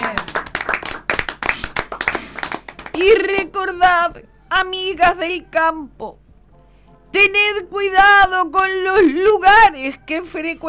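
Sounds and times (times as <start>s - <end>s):
audience applauding to welcome someone at a league gathering: 0.0s - 3.6s
speech: 3.0s - 6.2s, 7.1s - 10.6s.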